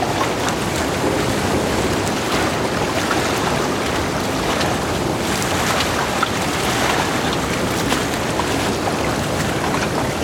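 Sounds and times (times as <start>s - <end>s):
rush of water and wind while sailing on a lake in rough weather: 0.0s - 10.2s
ticks and splashes, perhaps rain or spray on the boat: 0.0s - 10.2s
low rumble: 1.0s - 5.6s.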